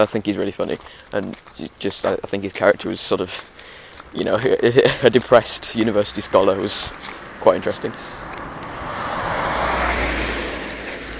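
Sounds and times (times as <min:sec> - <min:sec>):
speech: 0:00.0 - 0:08.3
car passing by: 0:06.7 - 0:11.1.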